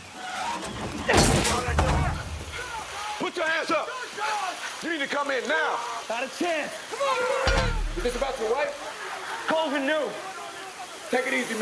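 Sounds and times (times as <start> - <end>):
heavy cabinet crashing against a door in a film action scene: 0.8 - 2.7, 7.5 - 8.6
speech: 3.3 - 10.3, 11.1 - 11.6.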